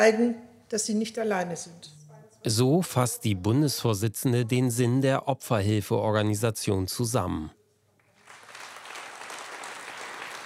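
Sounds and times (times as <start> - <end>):
speech: 0.0 - 7.6
audience applause: 8.2 - 10.4.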